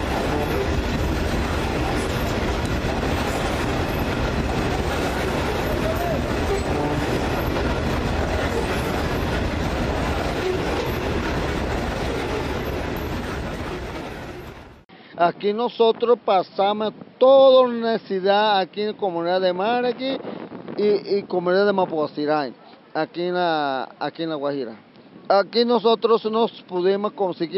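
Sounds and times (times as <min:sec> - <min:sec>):
loaded coal freight train passing in La Guajira: 0:00.0 - 0:14.9
speech: 0:15.2 - 0:27.5.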